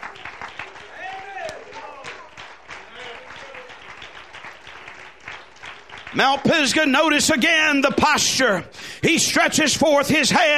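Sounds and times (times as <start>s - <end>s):
audience clapping hands: 0.0s - 7.4s
speech: 6.1s - 10.5s.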